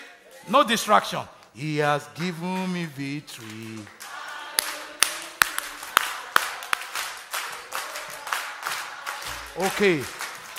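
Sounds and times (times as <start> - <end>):
audience clapping in rhythm: 0.0 - 10.5
speech: 0.5 - 4.0, 9.6 - 10.2.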